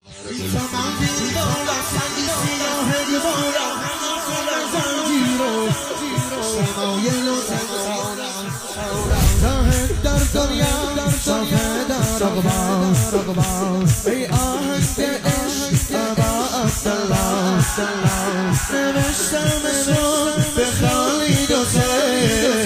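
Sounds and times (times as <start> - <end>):
devotional singing: 0.1 - 22.6.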